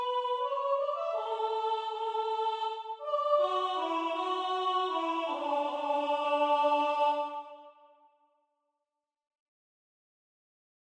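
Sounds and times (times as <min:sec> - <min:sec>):
soprano singing: 0:00.0 - 0:07.8.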